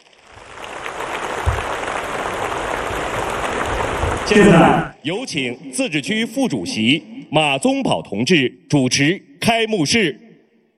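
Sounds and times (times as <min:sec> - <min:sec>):
audience applause: 0:00.1 - 0:04.9
speech: 0:04.3 - 0:10.2.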